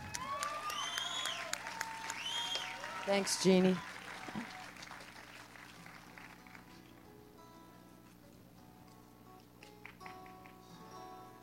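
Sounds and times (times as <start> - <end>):
audience applause at a songwriting jam: 0.0 - 7.2, 9.8 - 10.7
speech: 3.1 - 4.5.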